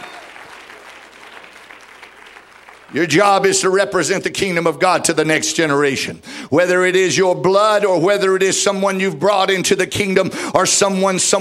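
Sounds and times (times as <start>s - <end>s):
church congregation clapping during a worship service: 0.0s - 3.8s
speech: 2.9s - 11.4s.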